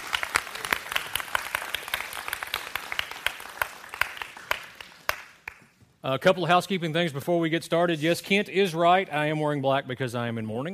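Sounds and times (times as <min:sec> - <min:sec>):
audience applause: 0:00.0 - 0:05.6
speech: 0:06.0 - 0:10.7.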